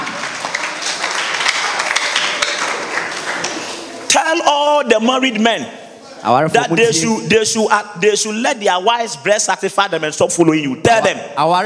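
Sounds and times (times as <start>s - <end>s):
audience clapping: 0.0s - 4.1s
speech: 4.3s - 11.6s.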